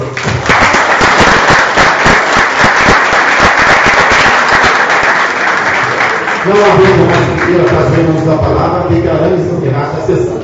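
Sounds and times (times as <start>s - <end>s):
audience clapping hands: 0.1s - 8.4s
speech: 6.5s - 10.4s.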